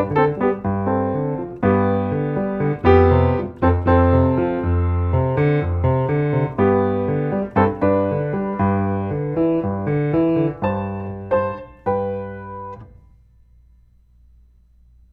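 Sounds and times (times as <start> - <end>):
piano: 0.0 - 14.0.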